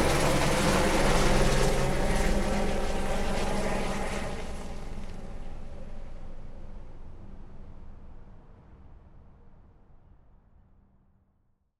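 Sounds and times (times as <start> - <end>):
helicopter starting up, running and taking off from a landing pad: 0.0 - 5.0.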